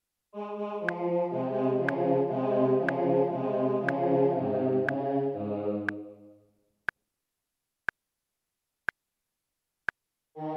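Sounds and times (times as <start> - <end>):
choral anthem: 0.3 - 6.4, 10.4 - 10.5.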